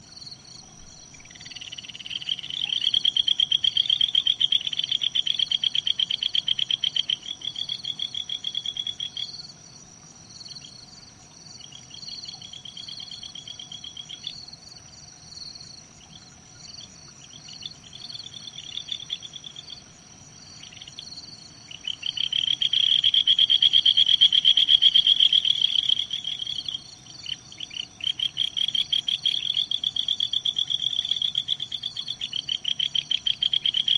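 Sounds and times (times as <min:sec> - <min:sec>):
kajika frog calling: 0:01.1 - 0:09.4, 0:16.0 - 0:33.9.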